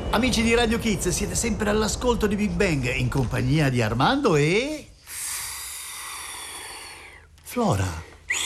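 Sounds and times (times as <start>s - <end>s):
speech: 0.1s - 4.9s, 7.5s - 8.4s
person blowing air through the mouth: 5.0s - 7.3s, 8.3s - 8.4s.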